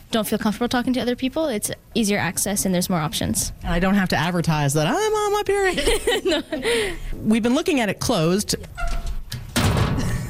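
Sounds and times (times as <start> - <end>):
speech: 0.1 - 9.0
laughter: 5.7 - 7.0
locker being opened: 8.6 - 10.2.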